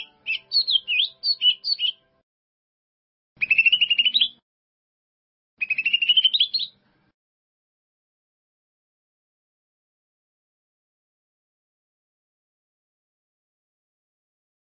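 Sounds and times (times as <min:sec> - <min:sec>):
bird song: 0:00.0 - 0:02.2, 0:03.4 - 0:04.4, 0:05.6 - 0:06.8.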